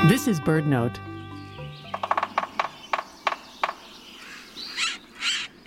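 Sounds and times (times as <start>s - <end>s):
speech: 0.1s - 1.1s
sapsucker drilling: 1.3s - 5.6s.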